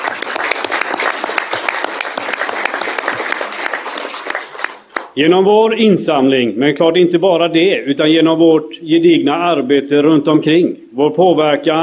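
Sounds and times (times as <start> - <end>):
audience applause: 0.0 - 5.2
speech: 5.2 - 11.8.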